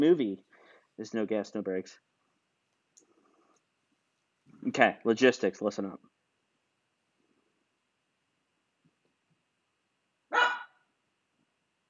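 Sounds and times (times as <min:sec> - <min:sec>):
speech: 0:00.0 - 0:02.1, 0:04.6 - 0:06.1
pug barking: 0:10.3 - 0:10.8.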